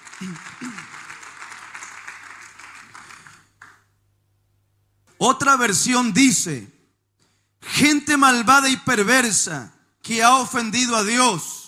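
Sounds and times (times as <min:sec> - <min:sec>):
crowd clapping in praise: 0:00.0 - 0:04.0
speech: 0:00.2 - 0:00.9, 0:05.2 - 0:06.8, 0:07.8 - 0:11.5.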